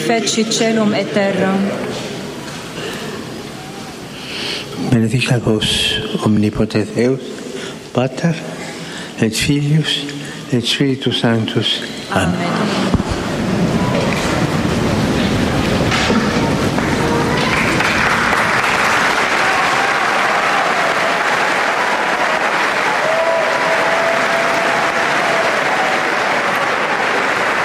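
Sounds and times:
speech: 0.1 - 2.0, 4.8 - 7.4, 8.0 - 8.6, 9.2 - 13.0
audience applause from pilgrims in the Paul VI Hall: 12.2 - 27.6.

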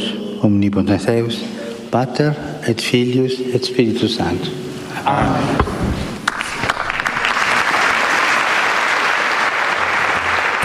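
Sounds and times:
speech: 0.4 - 6.0
large crowd applauding at the end of Pope Francis's general audience: 6.2 - 10.6.

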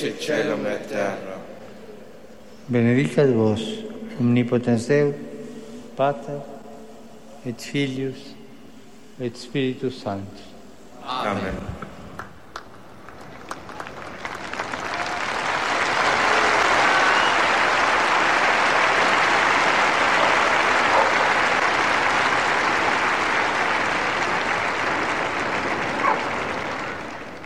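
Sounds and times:
speech: 0.0 - 1.4, 2.7 - 5.3, 6.0 - 6.5, 7.4 - 8.4, 9.2 - 11.8
storm of applause from a crowd: 12.2 - 27.4.

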